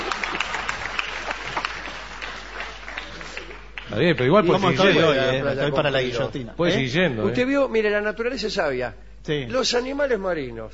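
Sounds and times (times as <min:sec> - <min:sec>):
audience applause: 0:00.0 - 0:05.0
speech: 0:03.9 - 0:10.7.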